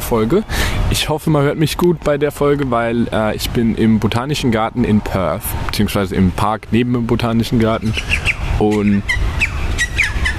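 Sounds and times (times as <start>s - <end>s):
outdoor noise: 0.0s - 10.3s
speech: 0.1s - 9.5s
birds calling in a park beside the botanical garden in Perth: 7.6s - 10.3s.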